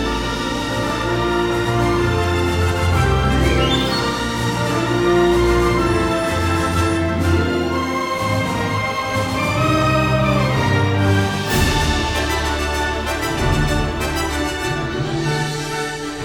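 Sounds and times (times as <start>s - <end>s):
bold heroic background music: 0.0s - 16.2s.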